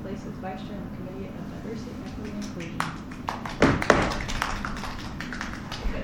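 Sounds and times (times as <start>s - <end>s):
speech: 0.2s - 4.1s
two people clapping: 2.1s - 5.9s.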